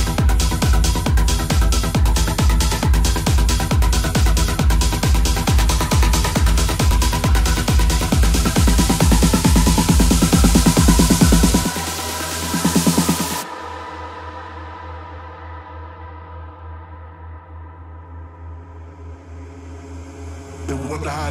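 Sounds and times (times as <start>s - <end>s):
peak time techno set: 0.0s - 15.6s, 20.6s - 21.2s.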